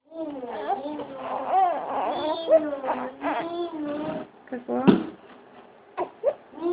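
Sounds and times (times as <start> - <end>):
hungry baby girl crying: 0.1 - 4.2, 6.0 - 6.7.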